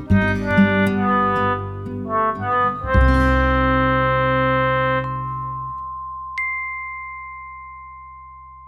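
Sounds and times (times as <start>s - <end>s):
oboe: 0.0s - 5.8s.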